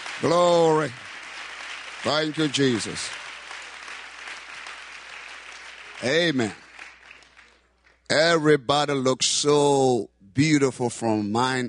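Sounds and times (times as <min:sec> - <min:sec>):
congregation clapping in church during an Easter service: 0:00.0 - 0:08.5
speech: 0:00.2 - 0:01.1, 0:02.0 - 0:03.2, 0:06.0 - 0:06.6, 0:08.1 - 0:11.6.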